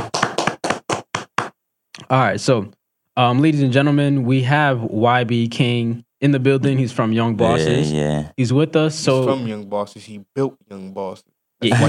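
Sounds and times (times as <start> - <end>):
audience clapping: 0.0 - 1.6
speech: 2.1 - 11.8.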